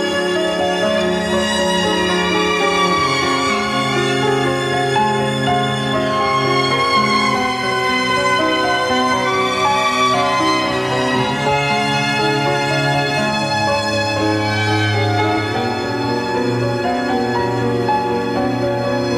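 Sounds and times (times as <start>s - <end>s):
strings: 0.0s - 19.1s.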